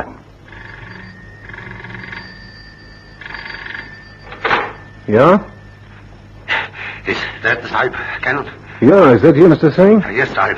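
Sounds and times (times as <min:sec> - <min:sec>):
telephone ringing: 0:00.0 - 0:06.4
speech: 0:05.1 - 0:05.5, 0:07.1 - 0:10.5.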